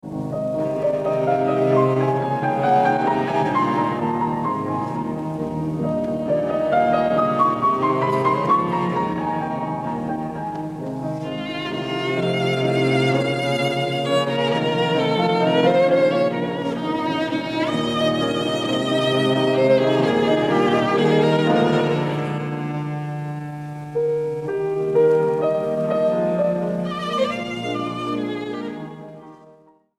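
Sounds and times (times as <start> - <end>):
classical trio piece: 0.0 - 29.9.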